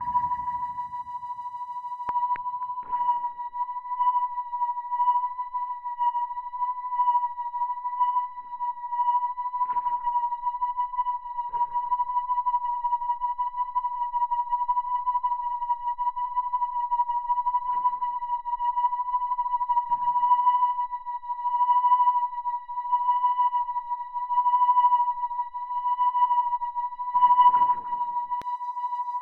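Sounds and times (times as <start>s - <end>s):
sine wave tone: 0.0s - 29.2s.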